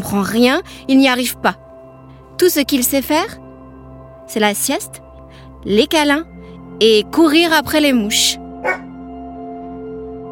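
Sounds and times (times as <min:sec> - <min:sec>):
speech: 0:00.1 - 0:01.6, 0:02.4 - 0:03.4, 0:04.3 - 0:05.0, 0:05.6 - 0:08.8
dog barking: 0:08.6 - 0:08.9.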